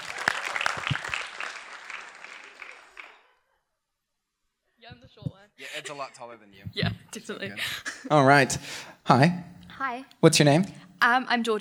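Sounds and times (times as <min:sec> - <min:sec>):
audience applause: 0:00.0 - 0:03.5
speech: 0:05.8 - 0:11.5.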